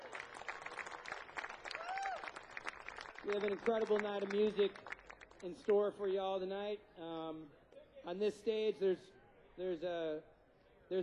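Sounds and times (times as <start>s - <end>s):
audience round of applause: 0.0s - 5.5s
speech: 3.2s - 10.3s, 10.9s - 11.0s.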